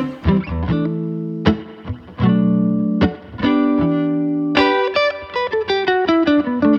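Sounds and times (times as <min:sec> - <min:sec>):
guitar being played: 0:00.0 - 0:06.7.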